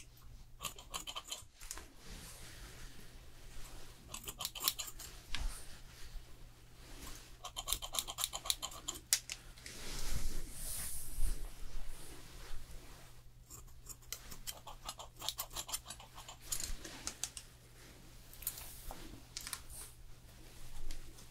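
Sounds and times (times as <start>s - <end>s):
low steady hum: 0.0s - 21.3s
scissors snipping during a haircut: 0.6s - 1.4s, 4.1s - 5.1s, 7.5s - 9.4s, 13.5s - 17.4s.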